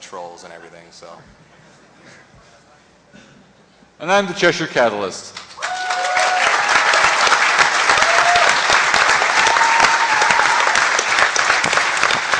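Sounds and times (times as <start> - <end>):
speech: 0.1 - 3.3, 4.0 - 5.4
audience applauding: 5.4 - 12.3.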